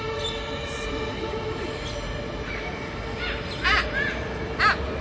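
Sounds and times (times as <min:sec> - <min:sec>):
bird calls in an aviary in Berlin: 0:00.1 - 0:00.6, 0:01.8 - 0:04.9.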